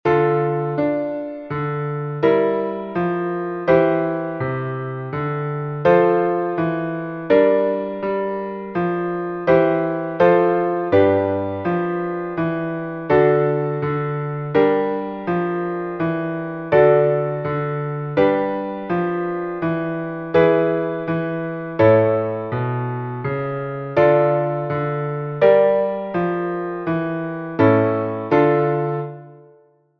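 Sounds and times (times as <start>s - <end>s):
piano: 0.0s - 29.9s.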